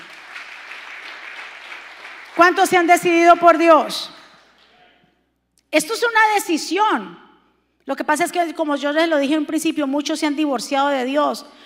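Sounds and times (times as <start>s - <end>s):
crowd applause: 0.0s - 2.6s
speech: 2.4s - 4.2s, 5.7s - 7.2s, 7.9s - 11.6s.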